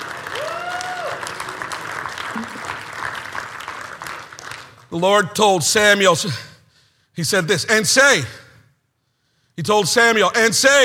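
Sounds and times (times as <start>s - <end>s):
audience clapping hands: 0.0s - 5.0s
speech: 4.9s - 6.5s, 7.2s - 8.4s, 9.6s - 10.8s.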